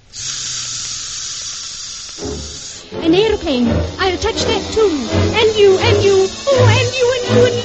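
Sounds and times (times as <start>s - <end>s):
clockwork toy train running: 0.0s - 7.6s
speech: 2.2s - 7.6s.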